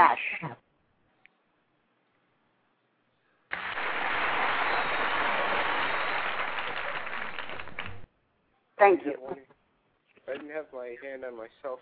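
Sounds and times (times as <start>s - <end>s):
audience applause: 3.5s - 8.1s
speech: 8.8s - 9.5s, 10.3s - 11.7s.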